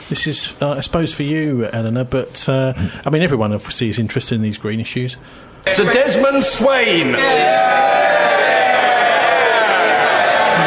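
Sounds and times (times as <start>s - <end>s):
speech: 0.1s - 8.3s
MPs cheering in the House of Commons chamber: 5.7s - 10.6s.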